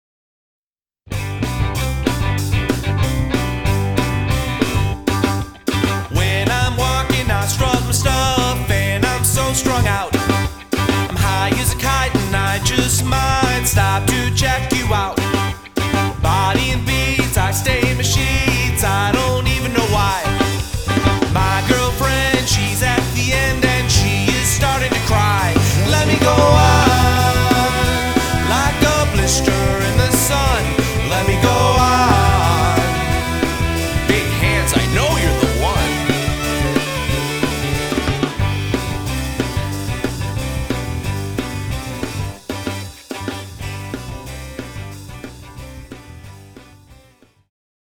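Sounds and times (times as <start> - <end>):
variety band playing: 1.1 - 46.8.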